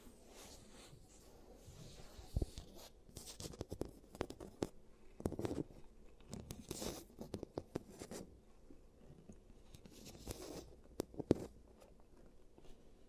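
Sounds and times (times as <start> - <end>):
giant teeth treatment clicks, taps and scraping: 2.3 - 8.3, 9.0 - 12.8.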